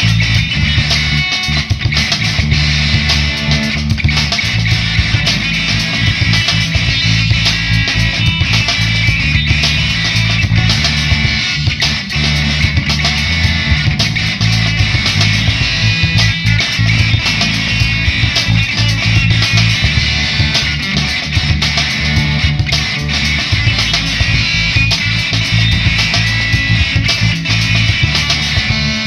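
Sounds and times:
drums: 0.0s - 29.0s
guitar playing a song: 0.0s - 29.0s.

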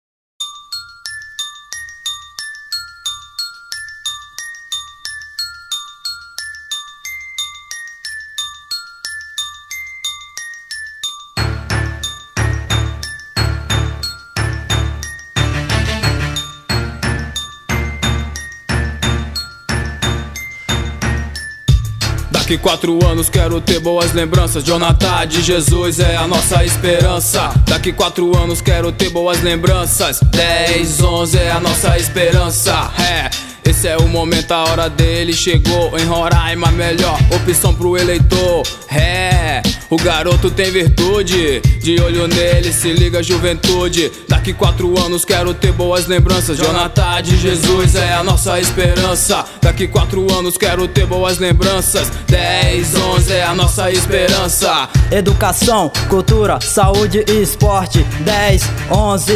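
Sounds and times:
forro music: 11.4s - 59.3s
rapping: 22.3s - 59.3s.

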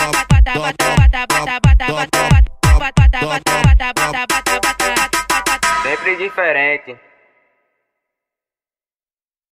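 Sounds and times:
brega funk music: 0.0s - 7.0s.

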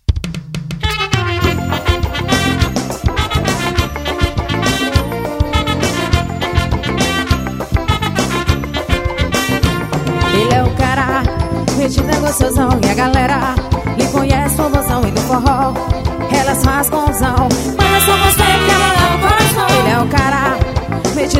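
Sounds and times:
forró music: 0.3s - 21.3s.

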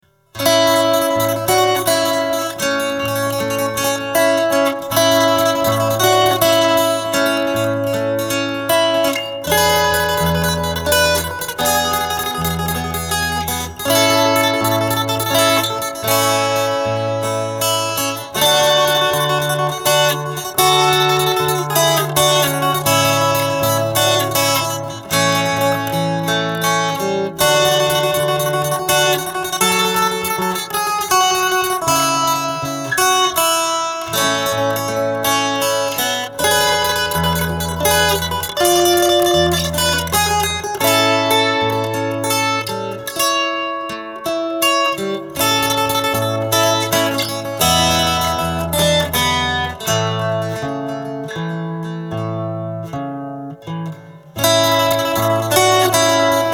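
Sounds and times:
acoustic guitar: 0.0s - 56.5s.

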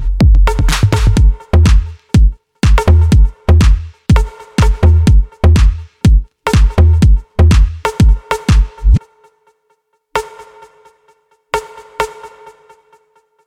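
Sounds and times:
snare drum: 0.0s - 9.0s.

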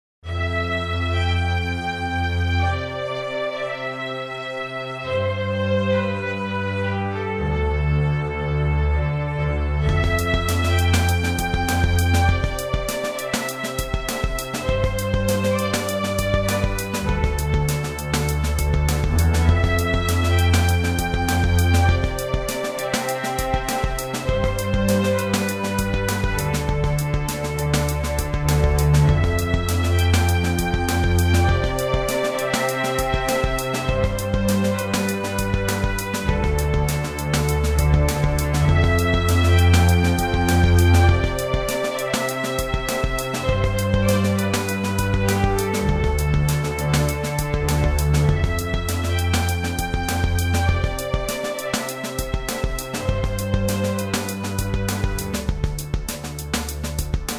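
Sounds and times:
strings: 0.2s - 57.3s.

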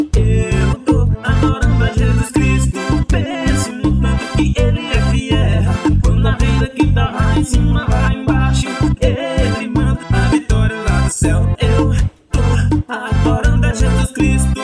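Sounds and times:
second vocal harmony: 0.2s - 14.6s.

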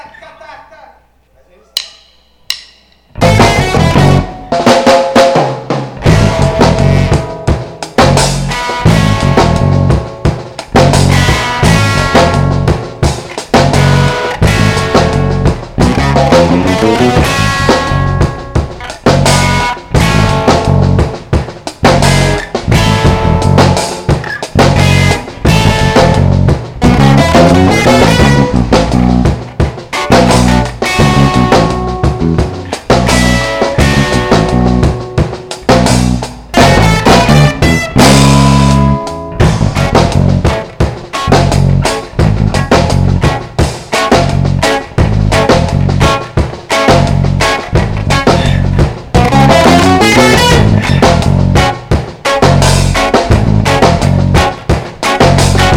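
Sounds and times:
ragga dub music: 1.6s - 55.7s.

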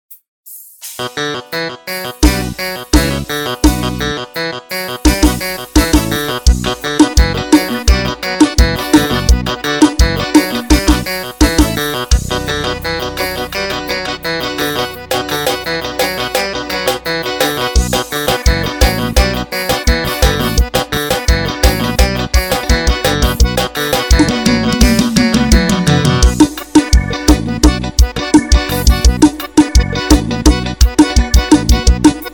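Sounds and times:
keyboard brega funk piseiro backing track: 0.8s - 32.3s.

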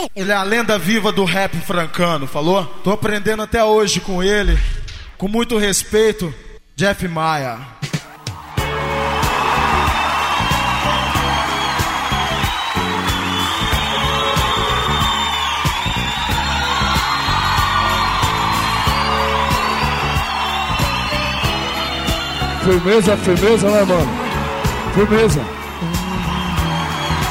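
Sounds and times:
speech: 0.0s - 7.8s, 22.6s - 24.2s, 25.0s - 25.9s
crowd cheering and whooping at a rap show: 7.9s - 27.2s.

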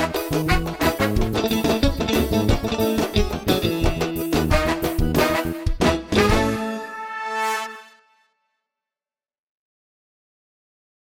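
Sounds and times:
forró music: 0.0s - 8.3s.

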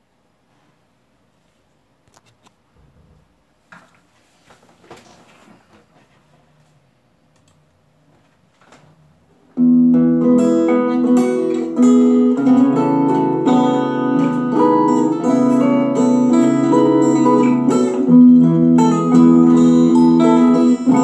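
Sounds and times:
toada folk song: 10.2s - 21.0s.

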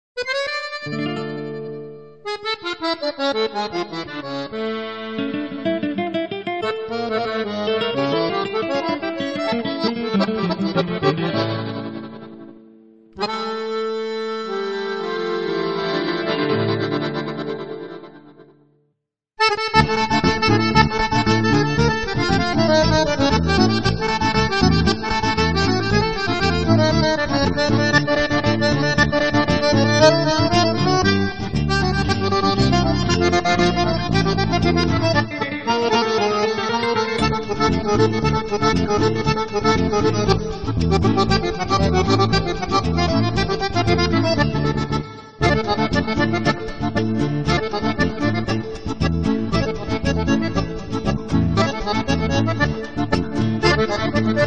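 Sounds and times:
accordion playing: 0.2s - 18.7s, 19.4s - 54.4s.

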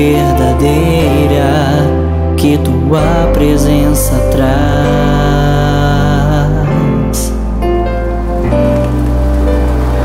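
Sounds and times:
sustained low musical tones: 0.0s - 10.0s
speech: 2.5s - 5.2s
rain falling in the early morning hours: 8.0s - 10.0s.

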